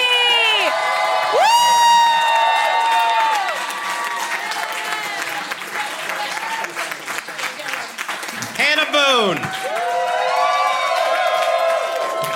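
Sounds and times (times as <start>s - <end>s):
crowd cheering and whooping: 0.0s - 6.8s, 9.4s - 12.3s
crowd clapping: 0.0s - 12.3s.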